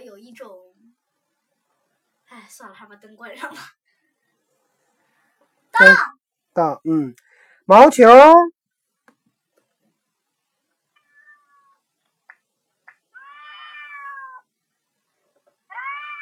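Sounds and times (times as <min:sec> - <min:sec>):
speech: 0:00.4 - 0:00.6, 0:02.4 - 0:03.8, 0:05.8 - 0:08.6
cat meowing: 0:11.0 - 0:11.8, 0:13.1 - 0:14.5, 0:15.7 - 0:16.1.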